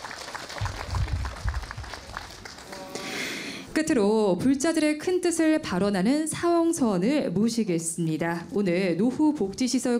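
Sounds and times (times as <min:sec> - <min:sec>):
applause: 0:00.0 - 0:03.6
speech: 0:03.8 - 0:09.9.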